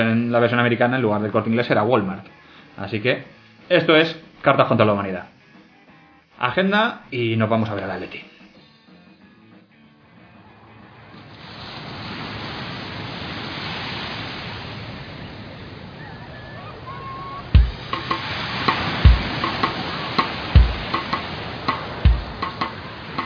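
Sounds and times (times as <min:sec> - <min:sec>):
speech: 0:00.0 - 0:05.4, 0:06.4 - 0:08.3
ocean waves in jingle music: 0:10.3 - 0:23.2.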